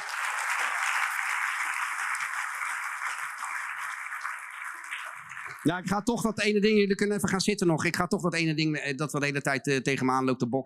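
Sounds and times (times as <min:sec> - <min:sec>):
audience applauding: 0:00.0 - 0:05.8
speech: 0:05.6 - 0:10.6.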